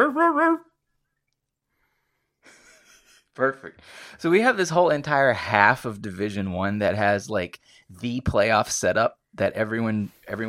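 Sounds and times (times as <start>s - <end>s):
speech: 0.0s - 0.7s, 3.4s - 10.4s
voice imitating a dog bark: 0.0s - 0.7s.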